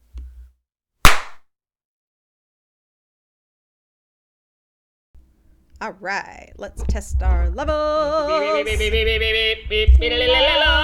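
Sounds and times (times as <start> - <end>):
hand clap for audio sync: 1.1 - 1.4
speech: 5.8 - 10.8.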